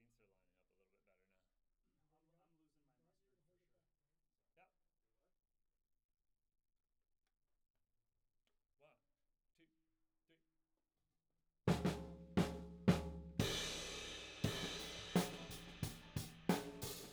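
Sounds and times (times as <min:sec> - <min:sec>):
tom drum: 0:11.7 - 0:17.1.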